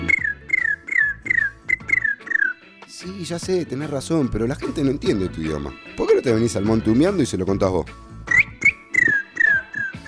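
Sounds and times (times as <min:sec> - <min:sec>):
little bird whistling: 0:00.0 - 0:02.6, 0:08.3 - 0:10.0
speech: 0:03.0 - 0:08.1.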